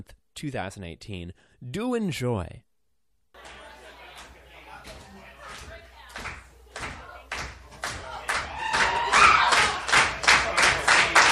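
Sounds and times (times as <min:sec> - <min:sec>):
speech: 0:00.0 - 0:02.7
audience applause at a live comedy show at a cafe: 0:07.8 - 0:11.2.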